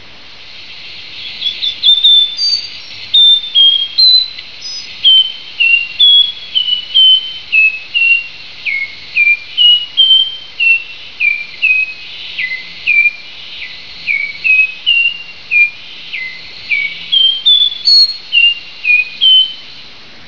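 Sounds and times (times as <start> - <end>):
hiss: 0.0 - 20.2
nightingale wren whistling: 1.2 - 19.7.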